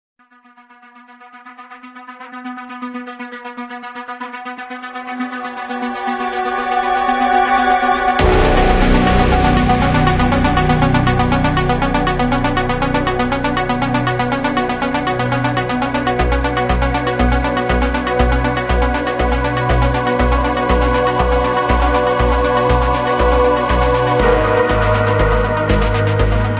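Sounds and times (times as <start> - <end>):
boss fight music: 6.7 - 26.5.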